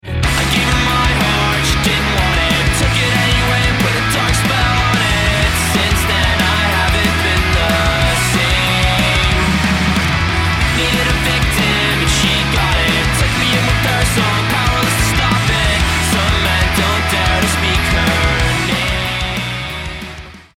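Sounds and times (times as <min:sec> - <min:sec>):
action music: 0:00.1 - 0:20.5.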